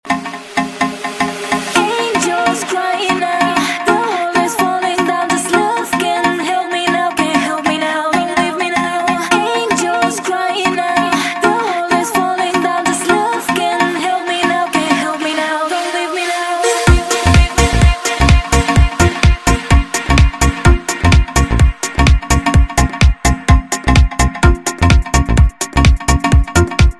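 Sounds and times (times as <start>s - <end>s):
house music: 0.0s - 26.9s.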